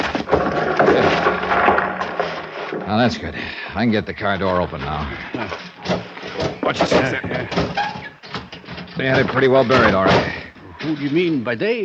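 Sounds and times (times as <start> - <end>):
rock being moved and tumbling down: 0.0 - 3.4
speech: 2.9 - 6.1, 6.7 - 7.9, 9.0 - 11.8.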